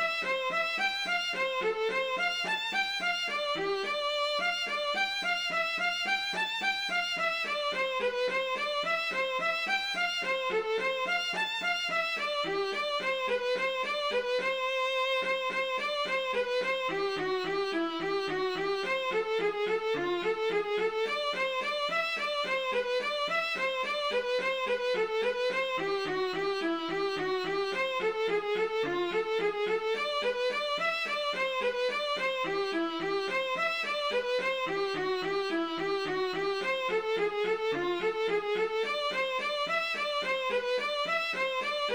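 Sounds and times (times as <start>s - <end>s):
fiddle melody: 0.0s - 41.9s.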